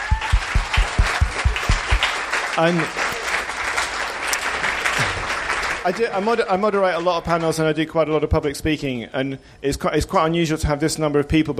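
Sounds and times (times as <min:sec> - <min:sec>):
audience applause: 0:00.0 - 0:06.2
speech: 0:02.6 - 0:03.0, 0:05.8 - 0:11.5.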